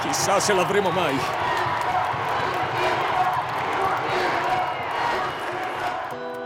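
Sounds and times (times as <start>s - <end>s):
whole stadium crowd roaring and shouting together: 0.0s - 6.3s
speech: 0.1s - 1.7s.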